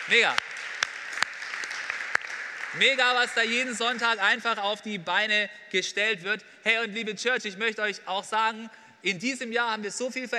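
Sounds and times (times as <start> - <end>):
crowd applauding: 0.0 - 4.4
speech: 0.1 - 0.5, 2.7 - 10.3.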